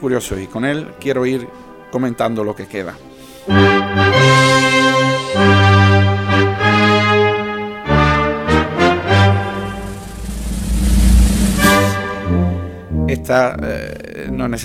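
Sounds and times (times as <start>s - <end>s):
speech: 0.0s - 4.4s, 13.3s - 14.6s
brass band playing a processional march: 3.5s - 10.2s, 11.5s - 12.8s
percussion hits: 9.1s - 13.0s.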